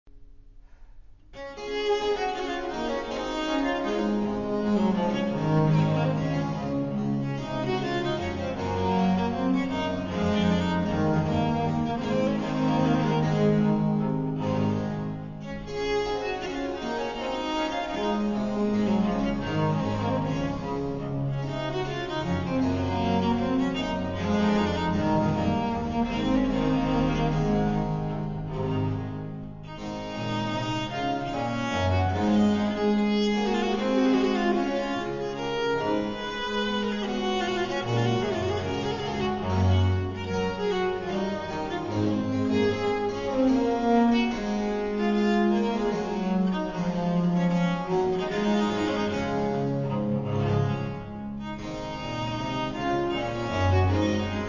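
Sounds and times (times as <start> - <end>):
baroque dance piece: 1.0 - 54.4.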